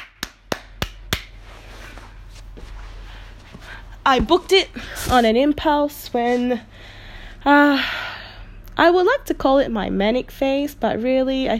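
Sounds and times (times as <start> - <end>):
single person clapping hands: 0.0 - 1.4
speech: 4.0 - 8.0, 8.8 - 11.5.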